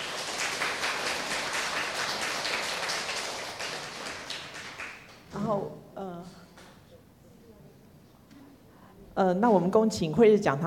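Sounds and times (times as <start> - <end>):
audience applause: 0.0 - 5.2
speech: 5.5 - 6.4, 9.2 - 10.6.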